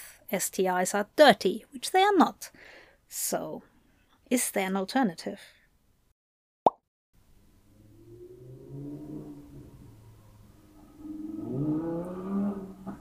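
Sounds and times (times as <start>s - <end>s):
speech: 0.3s - 3.7s, 4.3s - 5.6s
motorcycle passing: 7.7s - 12.9s.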